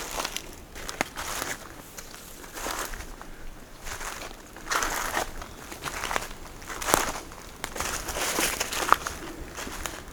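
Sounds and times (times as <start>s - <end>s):
footsteps crunching along an autumn path: 0.0s - 10.1s.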